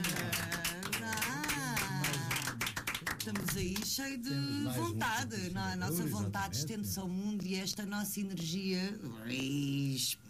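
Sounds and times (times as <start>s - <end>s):
round of applause: 0.0s - 3.6s
speech: 3.3s - 10.2s.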